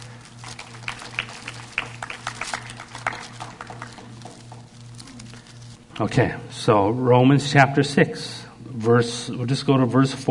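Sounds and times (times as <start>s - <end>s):
crowd clapping: 0.0s - 5.6s
low steady hum: 0.0s - 10.3s
speech: 6.0s - 10.3s.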